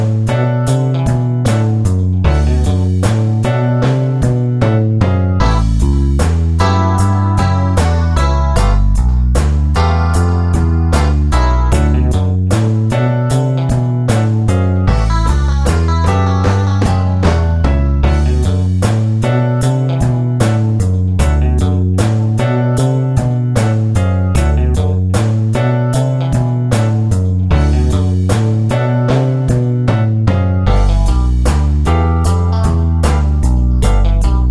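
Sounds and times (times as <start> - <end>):
12 bar blues boogie woogie bass line in D: 0.0 - 34.5.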